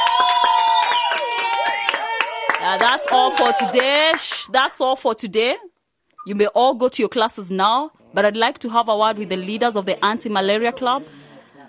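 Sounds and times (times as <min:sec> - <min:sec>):
round of applause: 0:00.0 - 0:04.8
speech: 0:02.7 - 0:11.2.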